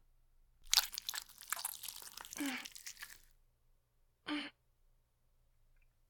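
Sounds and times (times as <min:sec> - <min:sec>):
slime girl sound effect: 0:00.7 - 0:03.2.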